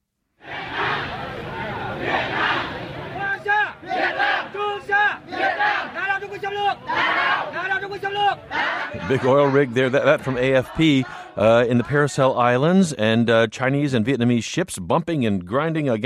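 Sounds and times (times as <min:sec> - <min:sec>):
Vietnamese protesters chanting against a Chinese oil rig: 0:00.4 - 0:12.4
speech: 0:07.9 - 0:16.0.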